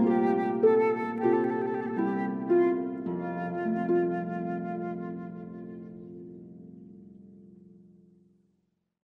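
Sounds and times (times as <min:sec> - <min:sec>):
flute: 0:00.0 - 0:06.9
harp: 0:00.0 - 0:08.4.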